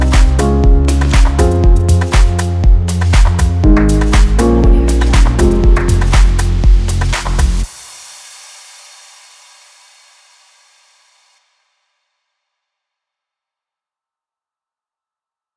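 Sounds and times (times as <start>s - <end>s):
deep house music: 0.0s - 7.7s.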